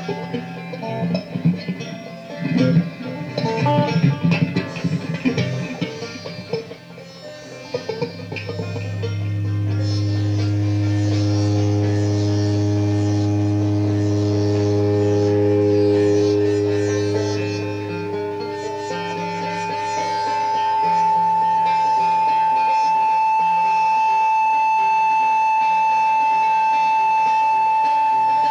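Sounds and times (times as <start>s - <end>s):
whale bone whistle: 0.0s - 28.5s.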